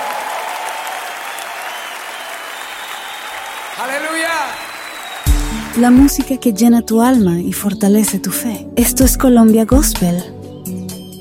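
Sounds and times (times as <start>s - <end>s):
loud applause: 0.0s - 6.3s
speech: 3.8s - 4.7s, 5.8s - 10.4s.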